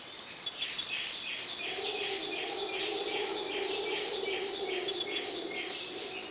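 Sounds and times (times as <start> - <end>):
jungle ambience: 0.0 - 6.3.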